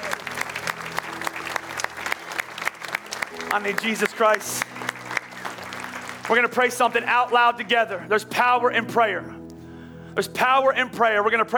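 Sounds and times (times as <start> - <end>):
audience clapping: 0.0 - 7.7
speech: 3.5 - 4.8, 6.3 - 9.4, 10.2 - 11.5.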